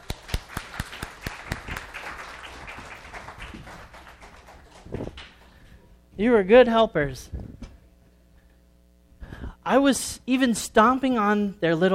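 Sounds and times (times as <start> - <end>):
small group clapping: 0.0 - 5.6
speech: 6.2 - 7.4, 9.7 - 11.9.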